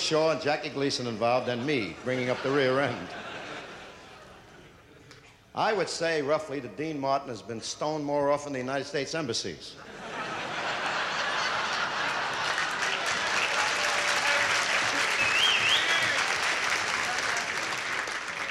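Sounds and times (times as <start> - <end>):
speech: 0.1 - 3.3, 5.6 - 10.0
laughter: 1.0 - 5.1, 9.8 - 18.4
audience applause: 10.8 - 18.4.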